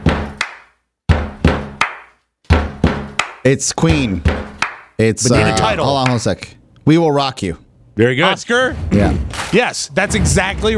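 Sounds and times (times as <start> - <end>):
drum rhythm knocked on a door: 0.0 - 0.4, 1.0 - 5.0
speech: 3.4 - 10.7.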